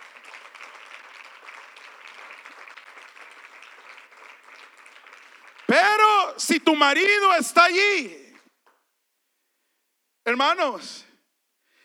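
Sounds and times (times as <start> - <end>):
audience applauding: 0.0 - 6.5
speech: 5.7 - 8.2, 10.3 - 11.1.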